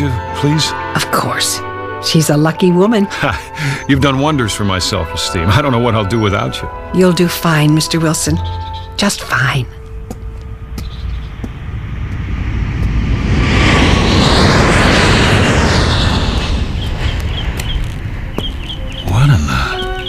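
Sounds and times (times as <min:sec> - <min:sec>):
airplane flying low overhead: 0:00.0 - 0:20.0
speech: 0:00.1 - 0:09.8.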